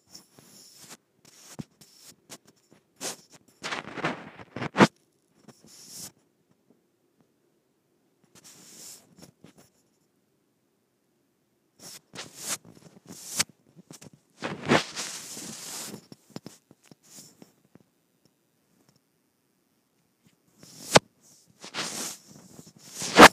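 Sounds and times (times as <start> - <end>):
microphone rubbed against skin: 0.0 - 6.2, 11.8 - 17.6, 20.6 - 23.3.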